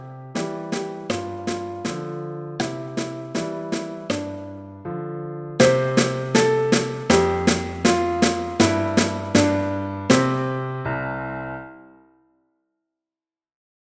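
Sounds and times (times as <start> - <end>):
piano: 0.0 - 12.4
snare drum: 0.4 - 4.4, 5.6 - 10.4.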